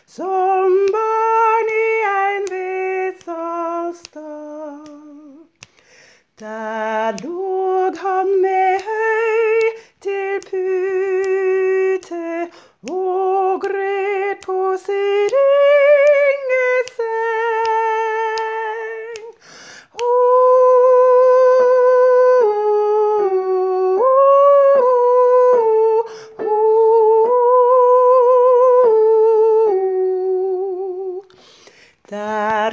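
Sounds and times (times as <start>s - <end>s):
soprano singing a Christmas song: 0.0s - 32.7s.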